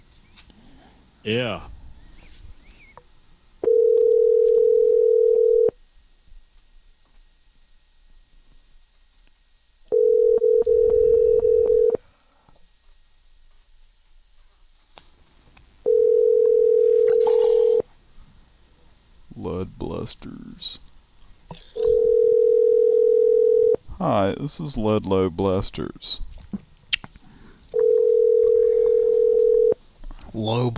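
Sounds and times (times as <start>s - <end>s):
speech: 1.2s - 1.8s, 24.2s - 26.6s, 30.4s - 30.7s
steady mid-pitched telephone tone: 3.6s - 5.8s, 9.9s - 12.0s, 15.9s - 17.9s, 21.8s - 23.8s, 27.7s - 29.8s.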